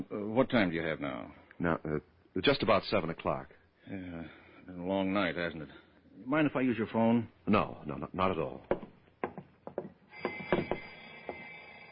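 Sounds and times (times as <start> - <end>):
speech: 0.0 - 8.8
alarm clock ringing: 10.1 - 11.9.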